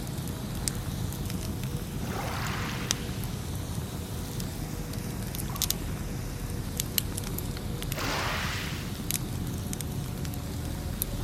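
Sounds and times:
bonfire crackling by the seaside: 0.0s - 11.2s
sea waves washing in: 1.4s - 5.1s, 7.9s - 9.3s
steady low rumble: 1.6s - 4.8s.

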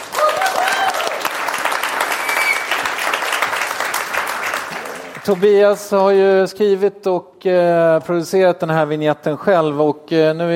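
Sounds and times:
audience applause: 0.0s - 5.8s
speech: 5.3s - 10.5s.

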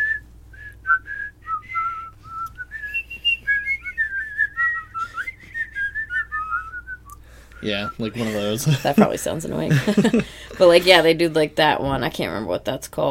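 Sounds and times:
person whistling a nursery tune: 0.0s - 8.2s
low steady hum: 0.0s - 13.0s
speech: 7.6s - 13.0s
laughter: 8.0s - 11.2s.

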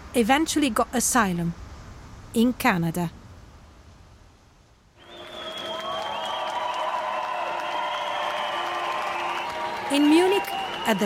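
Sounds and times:
speech: 0.1s - 1.6s, 2.3s - 3.2s
crowd cheering and applauding refugees at railway station: 5.0s - 11.0s.

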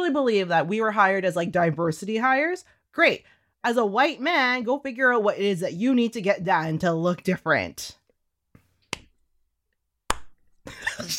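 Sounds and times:
speech: 0.1s - 8.0s, 10.7s - 11.1s
single hand clap: 10.1s - 10.4s.

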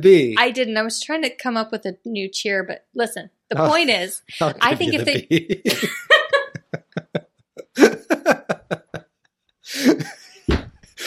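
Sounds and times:
speech: 0.0s - 6.2s
laughter: 3.6s - 9.0s, 9.7s - 10.5s
person kicking a table: 10.5s - 10.9s.

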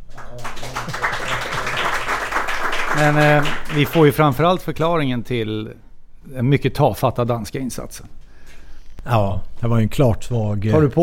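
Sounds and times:
audience applause: 0.0s - 4.2s
speech: 3.0s - 8.2s, 9.0s - 11.0s.

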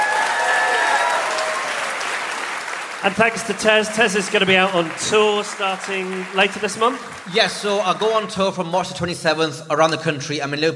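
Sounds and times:
audience round of applause: 0.0s - 8.5s
speech: 3.0s - 10.7s.

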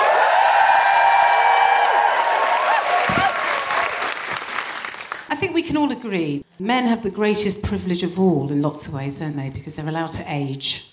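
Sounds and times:
high whooping voices: 0.0s - 4.2s
audience applause for a stand-up comedy act: 0.0s - 5.3s
speech: 5.7s - 10.9s.

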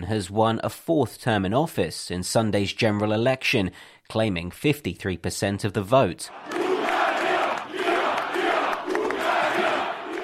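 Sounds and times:
speech: 0.1s - 6.6s
large crowd of supporters cheering and roaring: 6.3s - 10.2s.

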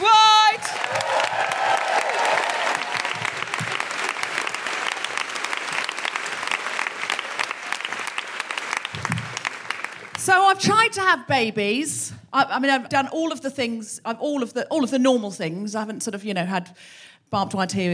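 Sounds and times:
audience applause: 0.0s - 10.2s
speech: 10.6s - 17.9s.

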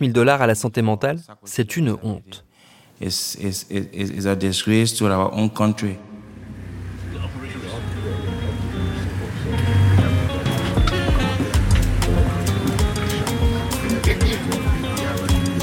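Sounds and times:
speech: 0.0s - 6.2s
truck engine and road noise from the back of a moving truck: 6.1s - 15.0s.

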